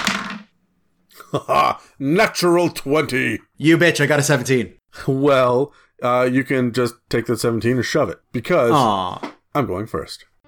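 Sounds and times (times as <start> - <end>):
dice being rolled: 0.0 - 0.5
speech: 1.3 - 10.3.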